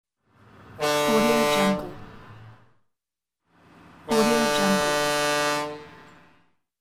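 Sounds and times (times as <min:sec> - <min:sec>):
ship horn: 0:00.7 - 0:02.7, 0:04.0 - 0:06.5.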